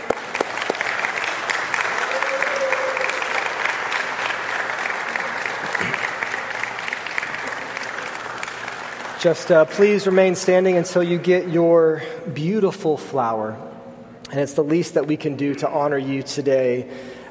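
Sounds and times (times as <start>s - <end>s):
audience applause: 0.0s - 11.4s
speech: 9.2s - 13.7s, 14.3s - 17.3s.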